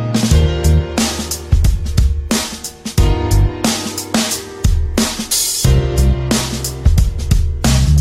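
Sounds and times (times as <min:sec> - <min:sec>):
music beat: 0:00.1 - 0:07.9.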